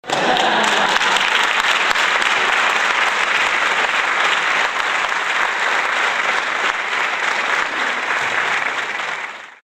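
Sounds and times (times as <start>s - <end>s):
laughter: 0.0s - 2.8s, 7.2s - 9.1s
applause: 0.0s - 9.6s.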